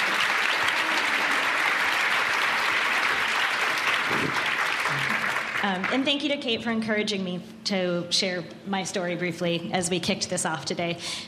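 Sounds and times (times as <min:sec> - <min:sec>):
round of applause: 0:00.0 - 0:06.0
speech: 0:05.6 - 0:11.2.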